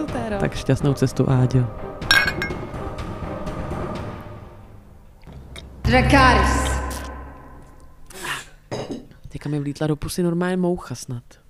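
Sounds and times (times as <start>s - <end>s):
speech: 0.0s - 2.4s, 5.9s - 6.7s, 9.5s - 11.4s
glasses clinking in a toast: 2.1s - 2.7s, 8.7s - 9.2s.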